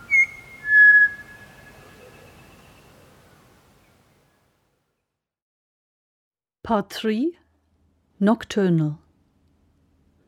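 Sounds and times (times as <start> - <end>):
pied butcherbird fluting song: 0.0 - 3.0
speech: 6.7 - 7.4, 8.2 - 9.0.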